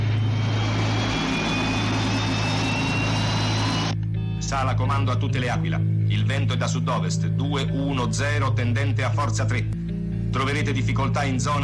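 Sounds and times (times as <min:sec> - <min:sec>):
aircraft engine starting: 0:00.0 - 0:04.0
speech: 0:04.5 - 0:11.6.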